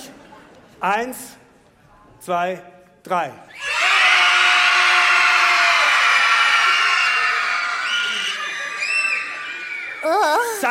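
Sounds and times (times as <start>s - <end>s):
speech: 0.8s - 1.4s, 2.2s - 3.7s, 10.0s - 10.6s
audience screaming as loudly as possible: 3.5s - 10.6s.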